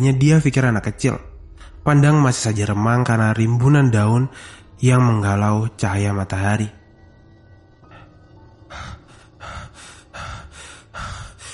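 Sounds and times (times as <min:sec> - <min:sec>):
speech: 0:00.0 - 0:06.8
heavy panting breaths: 0:07.8 - 0:11.5.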